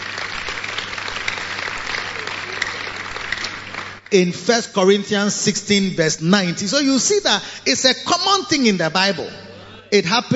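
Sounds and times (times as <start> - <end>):
audience clapping: 0.0 - 4.8
speech: 4.1 - 10.3.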